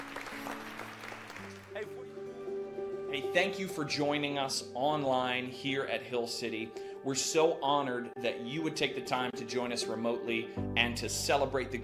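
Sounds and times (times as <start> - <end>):
audience applauding: 0.0 - 2.4
speech: 3.2 - 11.8.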